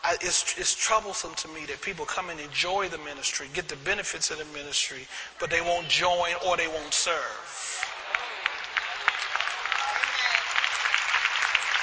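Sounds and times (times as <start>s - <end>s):
speech: 0.1s - 7.9s
audience applause: 7.8s - 11.8s.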